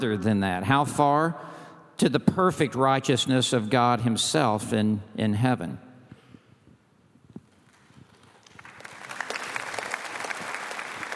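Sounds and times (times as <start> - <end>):
speech: 0.0 - 5.9
person clapping: 7.7 - 11.1.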